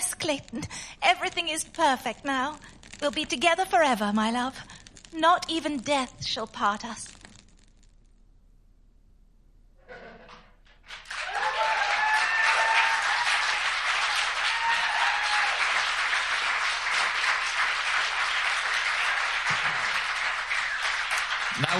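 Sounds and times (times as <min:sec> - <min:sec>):
speech: 0:00.3 - 0:07.1
audience applause: 0:10.8 - 0:21.7.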